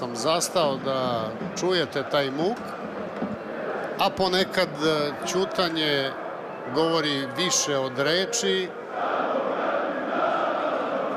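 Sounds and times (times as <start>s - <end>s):
speech: 0.0s - 3.0s, 4.0s - 9.1s
football supporters singing a chant in the stands: 8.8s - 11.1s.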